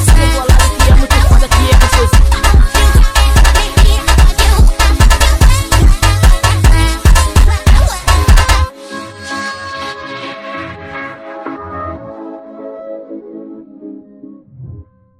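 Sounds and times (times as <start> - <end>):
sped up funk music: 0.0 - 8.7.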